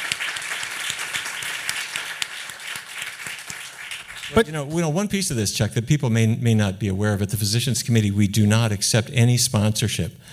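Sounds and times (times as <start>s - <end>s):
audience applause: 0.0s - 4.5s
speech: 4.3s - 10.3s.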